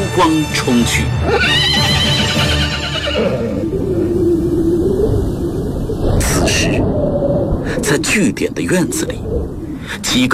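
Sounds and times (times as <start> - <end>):
speech: 0.2 - 2.6, 3.2 - 3.9, 6.4 - 10.3
horse neighing: 1.2 - 3.8
steady low rumble: 3.2 - 10.0.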